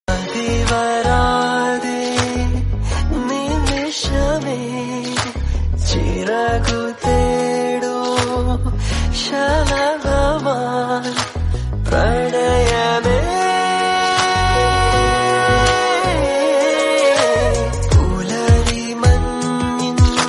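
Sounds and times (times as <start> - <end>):
Malayalam song: 0.1 - 20.2.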